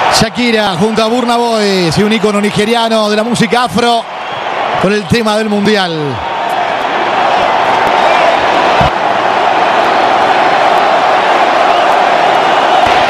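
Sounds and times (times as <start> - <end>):
stadium crowd cheering and chanting: 0.0 - 13.0
speech: 0.2 - 4.2, 4.8 - 6.3.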